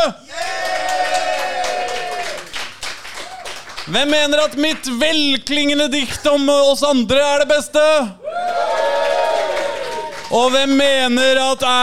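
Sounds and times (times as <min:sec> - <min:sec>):
speech: 0:00.0 - 0:00.2, 0:03.9 - 0:08.2, 0:10.3 - 0:11.8
audience cheering and clapping: 0:00.0 - 0:04.5, 0:08.2 - 0:11.0.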